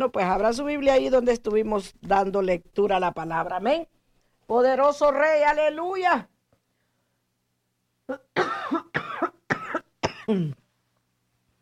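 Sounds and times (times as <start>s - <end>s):
speech: 0.0s - 6.3s, 8.1s - 8.9s, 10.3s - 10.6s
preacher coughing and throat clearing during a church sermon: 8.1s - 10.7s.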